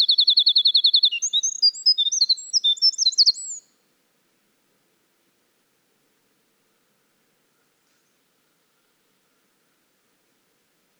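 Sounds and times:
Winter wren in full song: 0:00.0 - 0:03.6.

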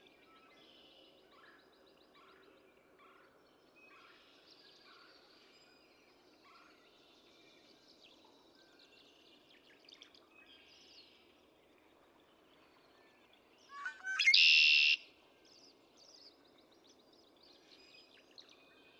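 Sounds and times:
Red-winged Blackbird: 0:13.7 - 0:15.0.

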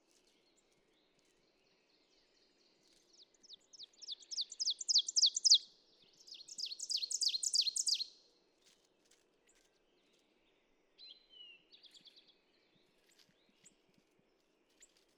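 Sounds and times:
ovenbird singing: 0:03.8 - 0:05.6, 0:06.3 - 0:08.1.

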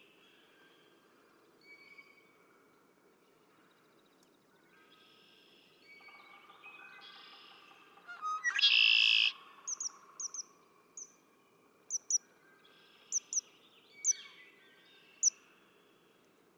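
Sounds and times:
red-winged blackbird song: 0:08.4 - 0:11.1, 0:11.9 - 0:12.2, 0:13.1 - 0:14.3.

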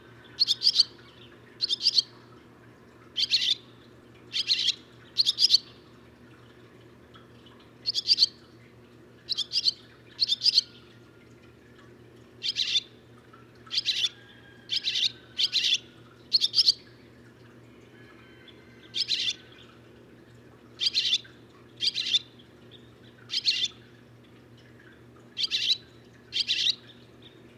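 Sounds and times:
Barn swallow chirping: 0:00.4 - 0:01.0, 0:01.6 - 0:02.1, 0:03.2 - 0:03.6, 0:04.3 - 0:05.8, 0:07.8 - 0:08.4, 0:09.3 - 0:10.8, 0:12.4 - 0:12.8, 0:13.7 - 0:16.8, 0:19.0 - 0:19.5, 0:20.8 - 0:22.3, 0:23.3 - 0:23.8, 0:25.4 - 0:27.0.

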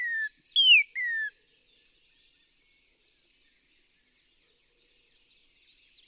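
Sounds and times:
northern cardinal song: 0:00.0 - 0:01.3.

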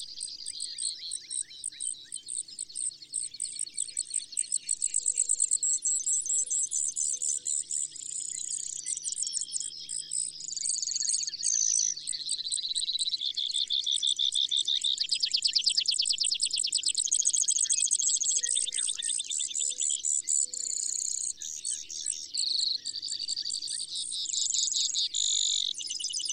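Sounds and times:
Brewer's sparrow song: 0:00.0 - 0:26.3.

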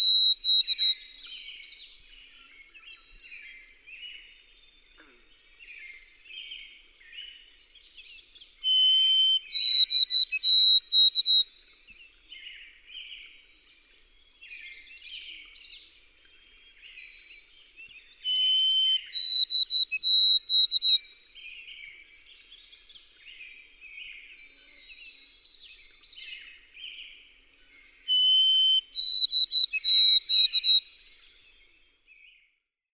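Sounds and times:
White-throated sparrow whistled song: 0:00.0 - 0:04.8, 0:08.1 - 0:11.5, 0:13.7 - 0:21.2, 0:28.0 - 0:32.6.

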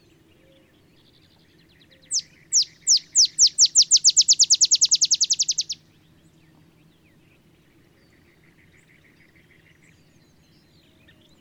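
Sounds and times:
low steady hum: 0:00.0 - 0:11.3
olive sparrow song of down-slurred chips: 0:00.0 - 0:11.3.

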